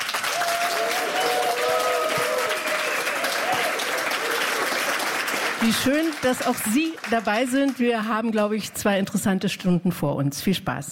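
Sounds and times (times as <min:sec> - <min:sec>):
applause from a large audience: 0:00.0 - 0:08.0
faint tonal voices or cheers: 0:00.2 - 0:04.8
speech: 0:05.6 - 0:10.9.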